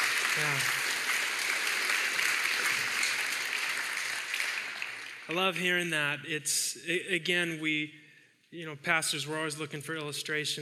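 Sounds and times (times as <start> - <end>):
audience applause: 0.0 - 5.4
speech: 0.4 - 0.9, 5.3 - 10.6.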